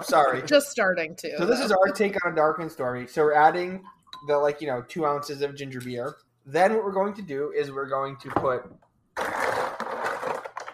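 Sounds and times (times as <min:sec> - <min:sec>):
laughter: 0:00.0 - 0:00.5
speech: 0:00.0 - 0:09.4
heap of ice cubes tipped into a drink: 0:09.2 - 0:10.7.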